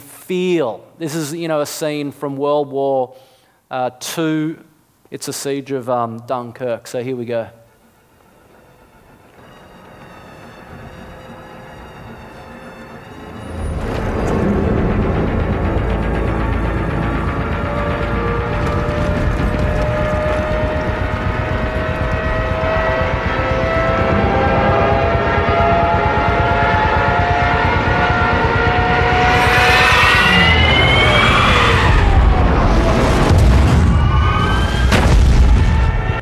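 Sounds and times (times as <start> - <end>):
speech: 0.3 - 7.6
Stuka dive bombers diving engine whine: 7.8 - 36.2
Stuka dive bomber siren tones: 8.7 - 36.2
heavy booming blasts: 9.0 - 36.2
loud continuous rumble: 13.3 - 33.5.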